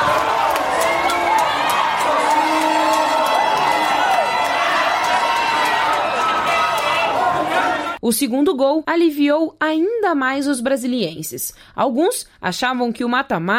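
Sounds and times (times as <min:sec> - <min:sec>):
football fans cheering wildly: 0:00.0 - 0:08.0
speech: 0:08.1 - 0:13.5.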